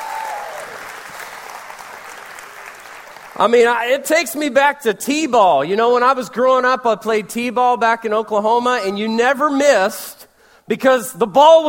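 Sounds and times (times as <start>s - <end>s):
audience applause: 0.0s - 3.4s
speech: 3.4s - 11.6s.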